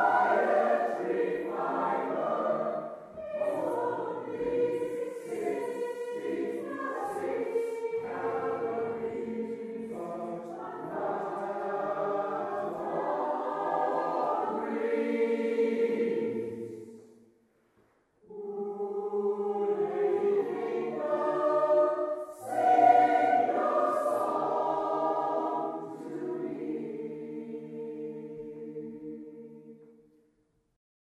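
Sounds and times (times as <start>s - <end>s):
SATB choir singing: 0.0s - 17.2s, 18.2s - 30.1s.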